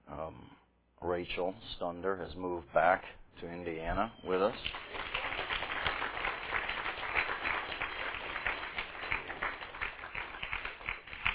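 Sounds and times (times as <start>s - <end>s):
speech: 1.2s - 4.9s
few people clapping: 4.4s - 11.3s.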